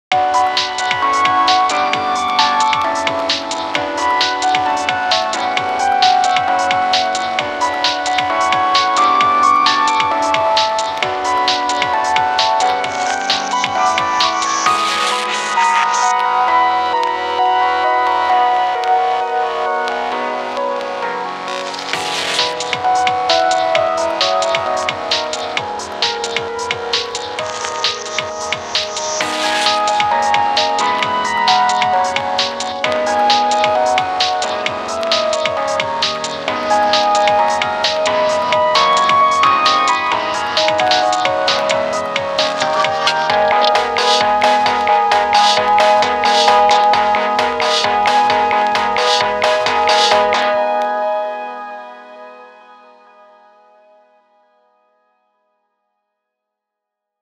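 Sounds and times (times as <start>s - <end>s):
noise-mixed soundscape: 0.1s - 51.2s.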